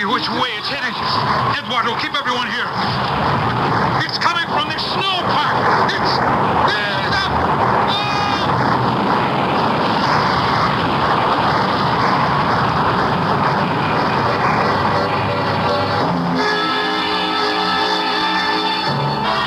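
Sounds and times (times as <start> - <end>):
avalanche of snow and ice roaring down mountain: 0.0 - 19.4
speech: 0.2 - 8.0
strained wavering cries: 15.1 - 19.4.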